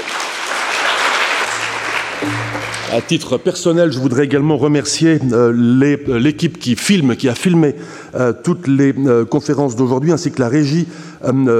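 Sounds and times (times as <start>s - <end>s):
audience applause: 0.0s - 2.2s
speech: 2.9s - 11.5s.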